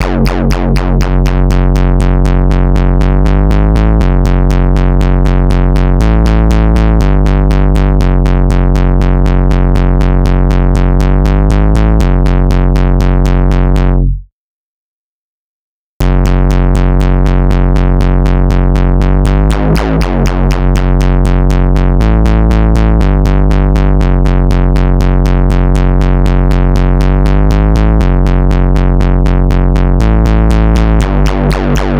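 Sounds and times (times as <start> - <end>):
bass: 0.0 - 14.3, 16.0 - 31.9.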